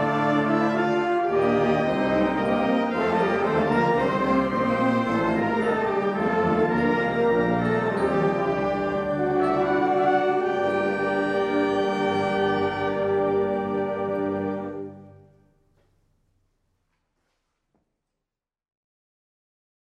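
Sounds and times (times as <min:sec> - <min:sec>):
courtly basse dance music: 0:00.0 - 0:15.3.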